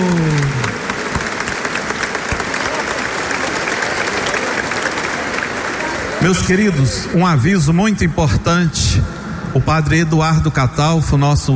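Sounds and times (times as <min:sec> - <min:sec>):
audience applause: 0:00.0 - 0:07.0
speech: 0:06.2 - 0:11.5.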